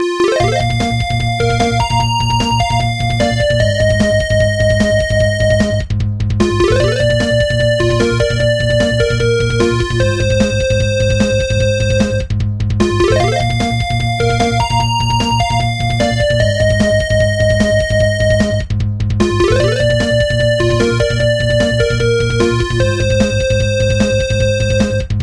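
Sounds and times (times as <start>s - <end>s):
music beat: 0.1s - 25.1s.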